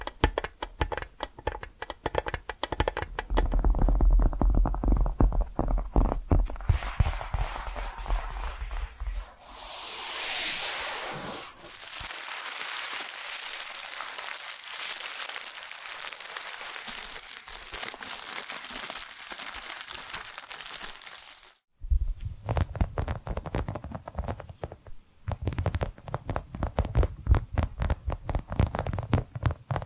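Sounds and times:
tapping and scratching: 0:00.0 - 0:09.2, 0:22.5 - 0:29.8
smooth rubbing: 0:06.6 - 0:13.0.

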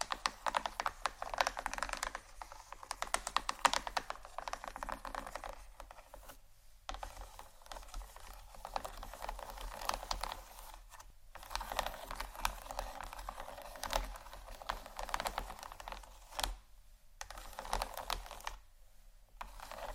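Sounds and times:
gentle scratching: 0:00.0 - 0:18.6, 0:19.4 - 0:19.9.

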